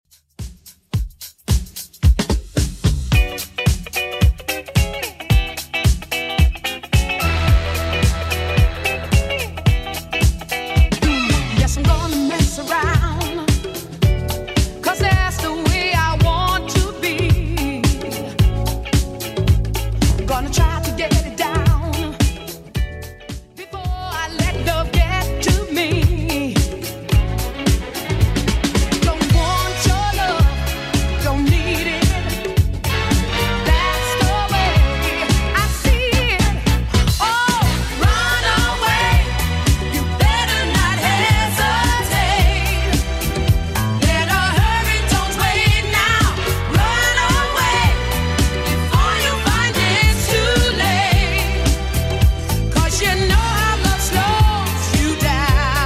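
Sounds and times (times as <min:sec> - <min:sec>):
80s-style beat at 110 bpm: 0:00.0 - 0:55.8.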